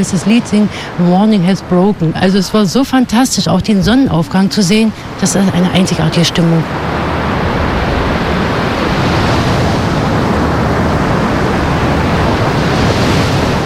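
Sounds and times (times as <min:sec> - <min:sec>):
speech: 0:00.0 - 0:07.0
ocean waves breaking on beach: 0:00.0 - 0:13.6.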